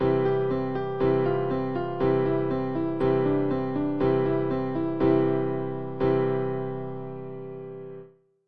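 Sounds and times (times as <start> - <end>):
piano chords: 0.0 - 8.1.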